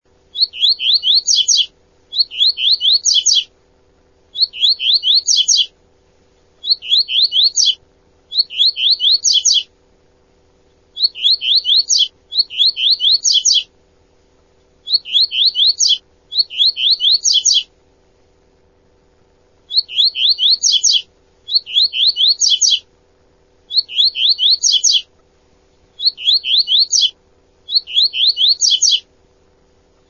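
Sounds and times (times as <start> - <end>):
small bird chirping: 0.3 - 3.5, 4.3 - 5.8, 6.6 - 9.7, 10.9 - 13.7, 14.8 - 17.7, 19.6 - 22.9, 23.6 - 25.2, 25.8 - 29.1.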